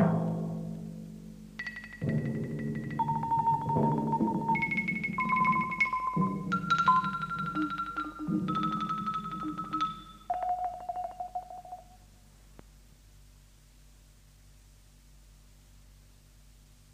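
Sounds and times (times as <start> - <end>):
percussion music: 0.0 - 0.8, 1.5 - 12.0.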